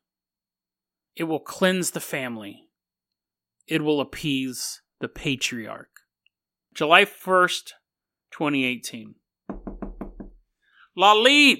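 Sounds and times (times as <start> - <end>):
speech: 1.2 - 2.7, 3.7 - 6.0, 6.8 - 9.6, 11.0 - 11.5
knocking on a door: 9.5 - 10.4.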